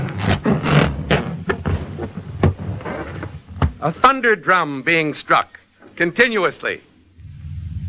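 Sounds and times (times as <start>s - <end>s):
fingers rubbed on a balloon: 0.0s - 3.5s
speech: 3.8s - 6.9s.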